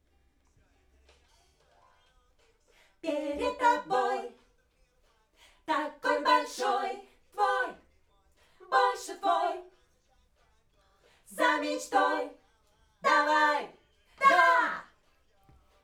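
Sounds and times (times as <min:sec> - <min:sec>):
backing vocals on AKG microphone: 0:03.0 - 0:04.4, 0:05.7 - 0:07.8, 0:08.6 - 0:09.7, 0:11.3 - 0:12.4, 0:13.0 - 0:14.9.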